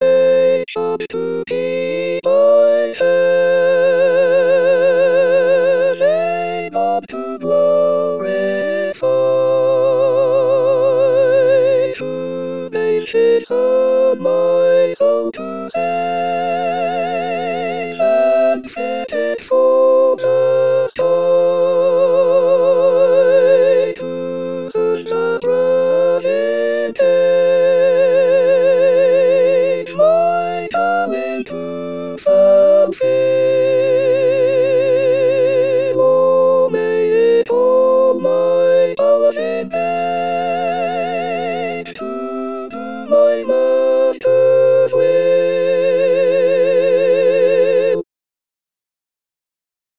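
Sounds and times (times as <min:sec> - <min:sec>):
slow original hymn: 0:00.0 - 0:48.0.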